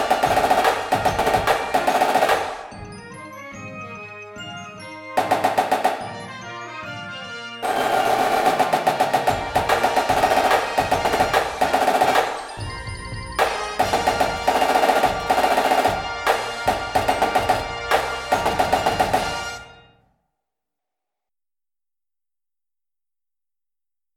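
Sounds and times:
snare drum: 0.0s - 2.9s, 5.2s - 6.4s, 7.6s - 19.7s
music: 0.0s - 20.2s.

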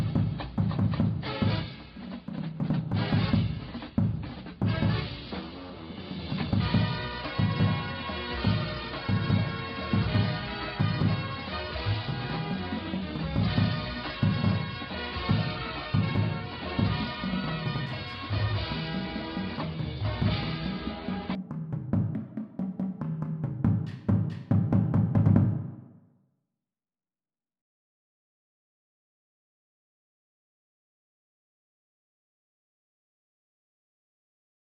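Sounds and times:
drumline: 0.0s - 25.8s
bass: 2.6s - 21.4s.

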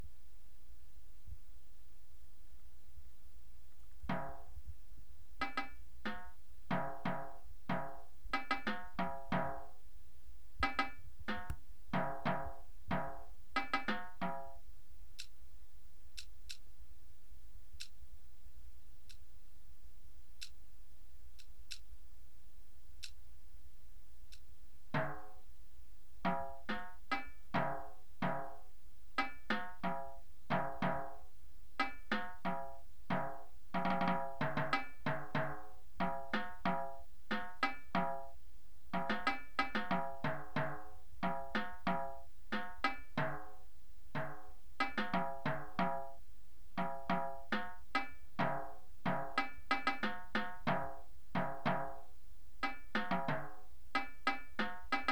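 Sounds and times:
tenor drums: 3.8s - 4.8s, 5.4s - 9.8s, 10.6s - 15.4s, 24.3s - 25.5s, 26.2s - 55.1s.

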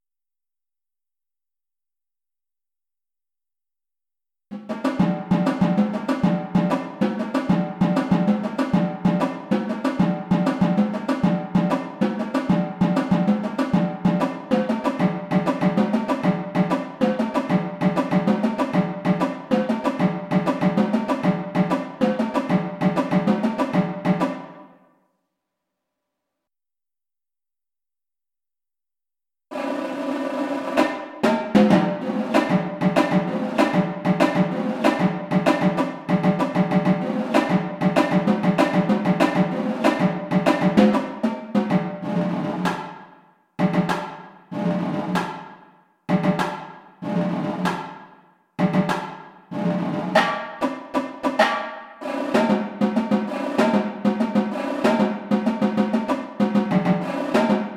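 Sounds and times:
drumline: 4.7s - 24.6s, 29.5s - 42.9s, 43.6s - 45.5s, 46.1s - 47.9s, 48.6s - 57.7s.

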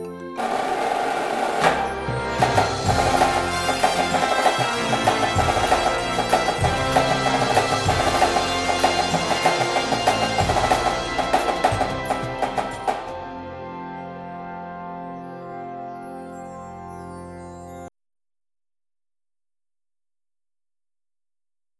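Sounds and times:
music: 0.0s - 17.9s
snare drum: 0.4s - 13.2s.

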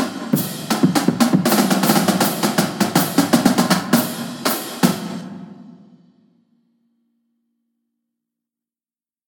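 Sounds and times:
drumline: 0.0s - 6.0s.

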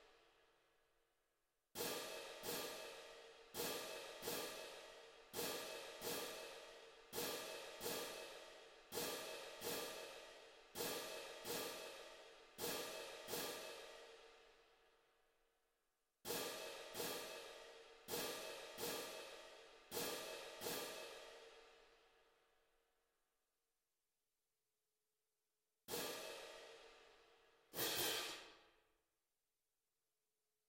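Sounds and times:
music: 0.0s - 23.4s, 25.9s - 29.2s
cymbals: 1.8s - 14.3s, 16.3s - 21.8s, 25.9s - 28.6s.

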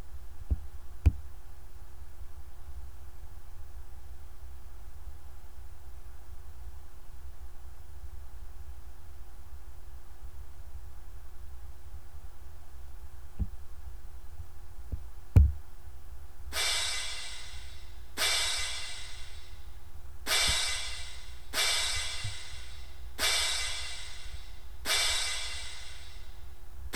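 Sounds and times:
cymbals: 16.5s - 26.9s.

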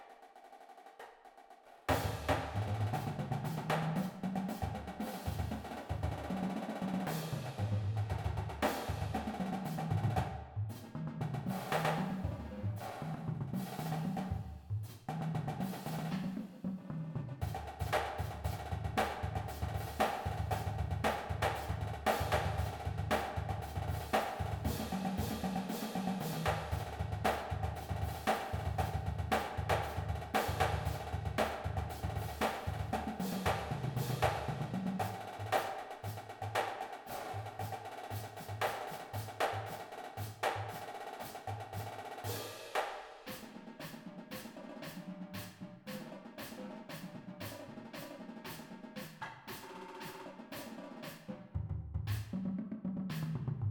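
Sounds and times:
full drumline playing: 1.9s - 53.6s.

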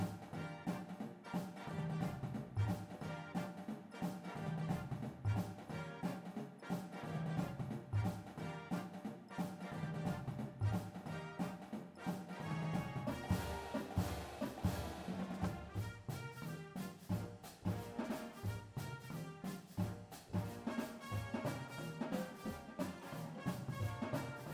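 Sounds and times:
full drumline: 0.0s - 24.5s
music: 0.0s - 24.5s.

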